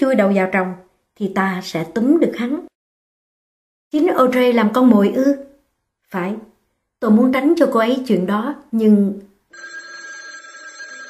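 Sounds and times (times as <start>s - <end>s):
speech: 0.0s - 2.7s, 3.9s - 5.5s, 6.1s - 9.7s
telephone bell ringing: 9.5s - 11.0s.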